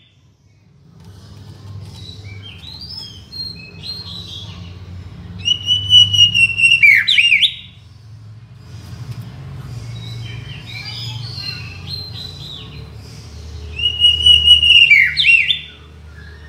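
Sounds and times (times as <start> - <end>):
shama from Borneo singing whistled phrases: 5.4 - 7.7, 13.7 - 16.4.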